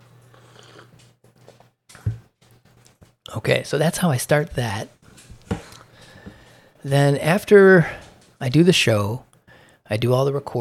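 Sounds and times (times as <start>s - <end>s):
person sipping coffee: 0.2s - 1.2s
speech: 3.3s - 5.0s, 6.8s - 9.3s, 9.9s - 10.5s.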